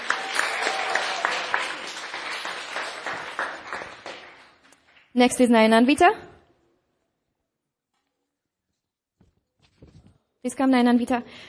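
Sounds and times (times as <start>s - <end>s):
audience applause: 0.0s - 5.0s
speech: 5.2s - 6.3s, 10.4s - 11.4s.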